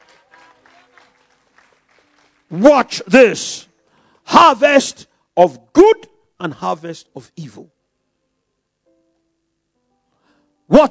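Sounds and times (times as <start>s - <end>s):
church congregation clapping as a clap offering to the Lord: 0.0s - 3.3s
speech: 2.5s - 3.7s, 4.4s - 7.8s.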